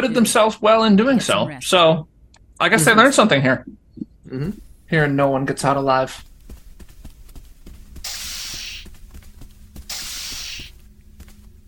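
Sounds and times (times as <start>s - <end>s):
speech: 0.0s - 6.3s
steady low mechanical hum: 0.0s - 11.6s
sci-fi turbolift doors opening with pneumatic hisses: 8.1s - 8.8s, 9.9s - 10.7s.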